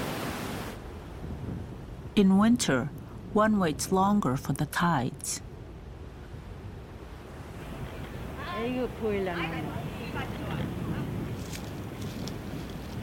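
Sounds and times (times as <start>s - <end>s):
sea waves slapping: 0.0s - 1.0s, 7.2s - 13.0s
speech: 2.2s - 5.5s, 8.6s - 10.4s.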